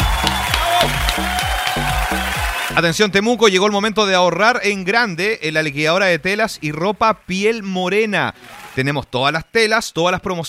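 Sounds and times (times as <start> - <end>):
applause: 0.0 - 3.0, 8.2 - 9.4
bouncy musical backing: 0.0 - 3.0
speech: 2.8 - 10.4.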